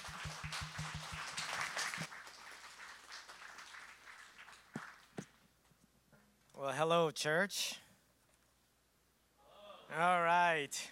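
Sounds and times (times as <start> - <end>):
audience applause: 0.0 - 5.2
speech: 6.6 - 7.8, 10.0 - 10.9.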